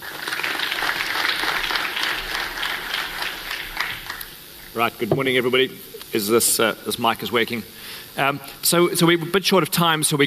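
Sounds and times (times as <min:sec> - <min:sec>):
audience applauding a speaker onto a conference stage: 0:00.0 - 0:04.5
speech: 0:04.8 - 0:10.2.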